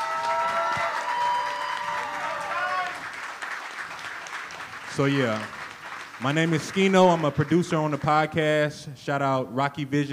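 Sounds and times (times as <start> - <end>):
audience applause: 0.0 - 8.0
speech: 5.0 - 5.6, 6.2 - 10.1.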